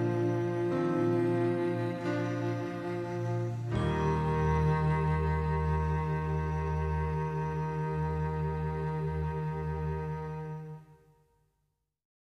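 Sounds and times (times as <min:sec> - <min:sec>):
ambient cello: 0:00.0 - 0:11.3.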